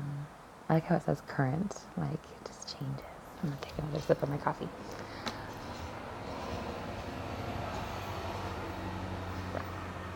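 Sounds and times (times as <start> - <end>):
speech: 0.7 - 5.3
bus rumbling by outside a window: 4.6 - 10.1.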